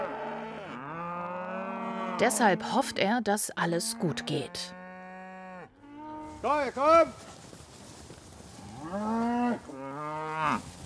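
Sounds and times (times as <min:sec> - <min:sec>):
cows mooing: 0:00.0 - 0:03.0, 0:03.7 - 0:06.4, 0:08.6 - 0:10.6
speech: 0:02.2 - 0:04.8, 0:06.4 - 0:07.4, 0:08.9 - 0:09.7, 0:10.4 - 0:10.7.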